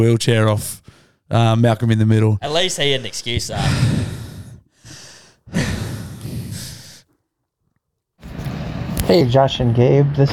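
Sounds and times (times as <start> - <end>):
speech: 0.0 - 4.1, 9.1 - 10.3
deep heavy breaths through nose and mouth: 0.7 - 1.3, 2.4 - 7.2.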